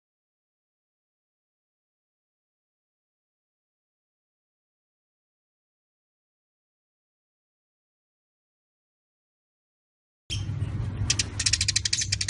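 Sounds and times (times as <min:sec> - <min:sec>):
Eurasian tree sparrow chattering: 0:11.1 - 0:12.2.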